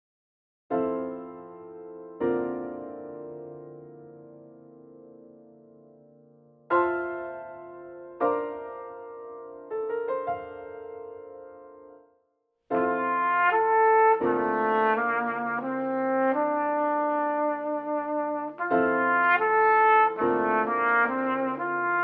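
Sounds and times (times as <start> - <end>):
piano: 0.7 - 22.0
trumpet: 12.7 - 22.0.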